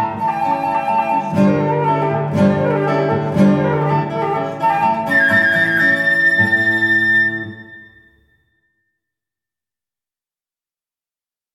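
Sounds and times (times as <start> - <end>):
guitar: 0.0 - 8.5
flute: 0.0 - 8.6.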